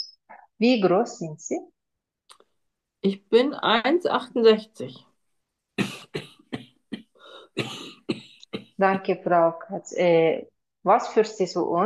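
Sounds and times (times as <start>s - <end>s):
speech: 0.6s - 1.8s, 3.0s - 5.1s, 8.8s - 11.8s
coughing: 5.8s - 9.2s.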